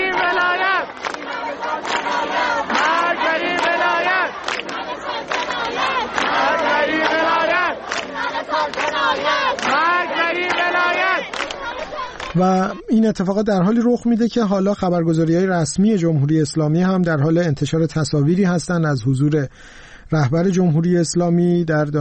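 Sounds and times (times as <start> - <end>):
students chanting at a protest at Isfahan University of Technology: 0.0 - 13.0
speech: 12.4 - 21.9.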